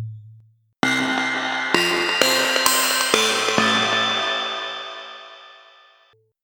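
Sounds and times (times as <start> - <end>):
bells struck with mallets: 0.8 - 5.9.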